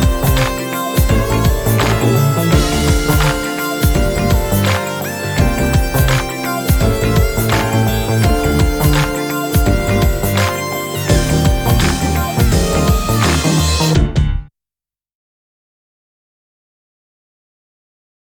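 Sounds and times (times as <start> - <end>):
instrumental music without vocal: 0.0 - 14.5.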